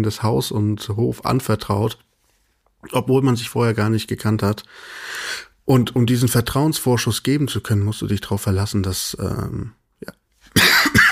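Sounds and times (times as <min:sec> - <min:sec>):
speech: 0:00.0 - 0:02.1, 0:02.8 - 0:11.0
faint breathy sounds: 0:04.6 - 0:05.6
person coughing: 0:10.5 - 0:11.1.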